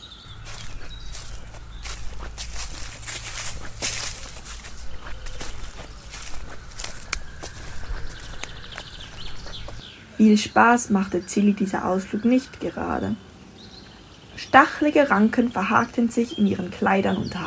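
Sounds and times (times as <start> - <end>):
footsteps stomping off into a forest: 0.3 - 9.8
rustling underfoot: 0.3 - 9.8
speech: 10.2 - 13.3, 14.5 - 17.4.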